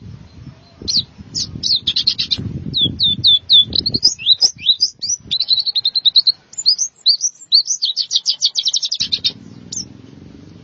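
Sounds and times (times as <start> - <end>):
white-eye twittering song: 0.3 - 10.0.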